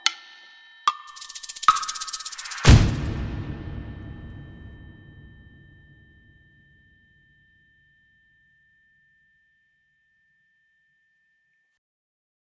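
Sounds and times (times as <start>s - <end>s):
percussion: 0.0s - 7.2s.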